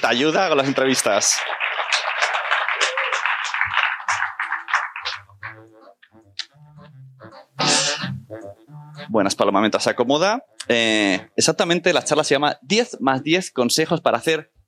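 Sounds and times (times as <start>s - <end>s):
speech: 0.0s - 2.1s, 9.2s - 14.6s
audience applause: 0.0s - 5.7s.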